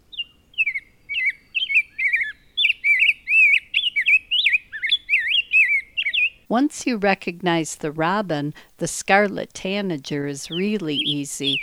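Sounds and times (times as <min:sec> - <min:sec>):
rose-breasted grosbeak singing: 0:00.0 - 0:06.4, 0:08.8 - 0:11.6
speech: 0:06.5 - 0:11.6.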